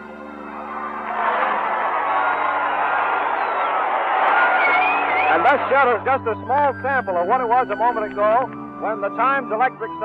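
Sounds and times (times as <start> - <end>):
crowd screaming and cheering in Times Square: 0.0 - 5.9
speech: 5.5 - 10.0.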